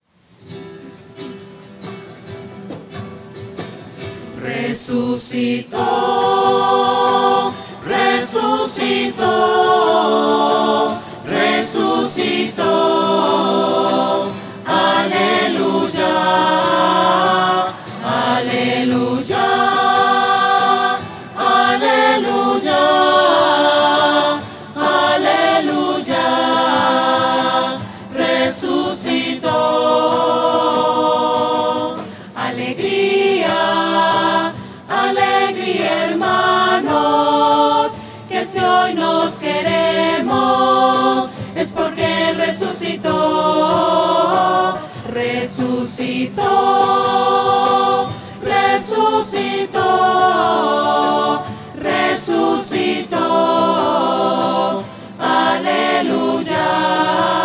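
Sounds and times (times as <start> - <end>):
voices: 4.4 - 57.4.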